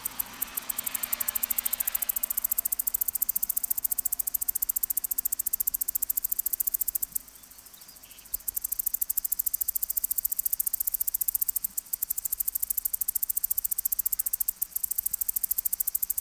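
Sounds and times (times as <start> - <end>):
cicada ticking: 0.0 - 16.1.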